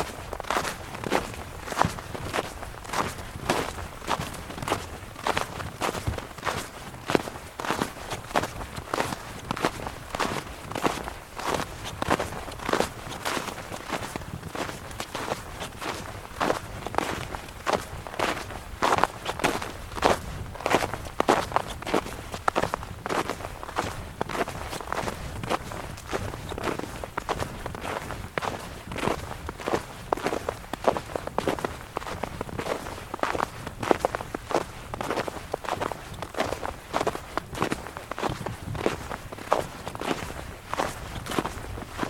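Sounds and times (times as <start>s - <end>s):
footsteps crunching through snow on Parnassos mountain in Greece: 0.0s - 42.0s.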